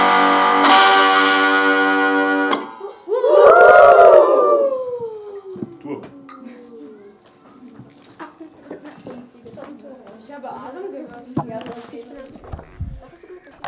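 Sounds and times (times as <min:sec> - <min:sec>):
song: 0:00.0 - 0:05.0.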